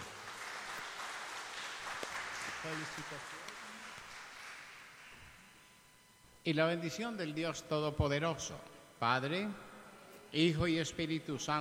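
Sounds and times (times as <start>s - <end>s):
audience applauding: 0.0s - 5.3s
speech: 2.6s - 3.4s, 6.4s - 9.7s, 10.3s - 11.5s.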